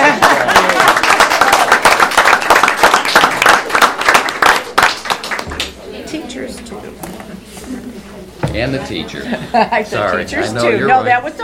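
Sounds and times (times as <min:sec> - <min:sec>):
laughter: 0:00.0 - 0:00.9, 0:09.0 - 0:10.2
audience applause: 0:00.0 - 0:05.8
speech: 0:08.6 - 0:11.4.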